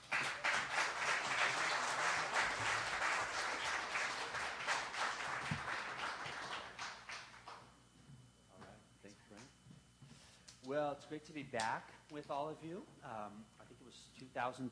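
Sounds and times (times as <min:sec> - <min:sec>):
audience applause welcoming a speaker at a Riverside gathering: 0:00.0 - 0:07.6
speech: 0:10.7 - 0:14.7.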